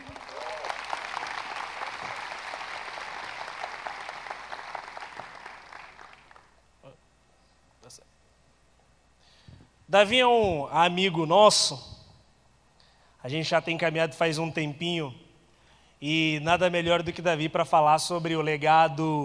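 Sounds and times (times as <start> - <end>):
audience applause: 0.0 - 6.5
speech: 9.9 - 11.9, 13.3 - 15.2, 16.0 - 19.2.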